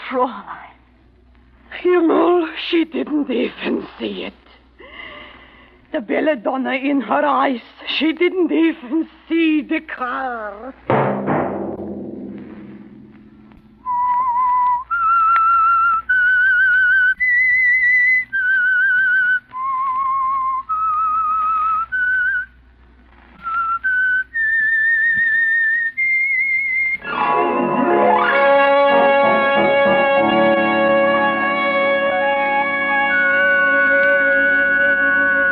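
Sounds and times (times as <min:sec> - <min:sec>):
speech: 0:00.1 - 0:00.7, 0:01.8 - 0:04.4, 0:05.9 - 0:11.2
whistled theme melody: 0:13.8 - 0:22.4, 0:23.5 - 0:35.4
orchestral chord: 0:27.0 - 0:35.4.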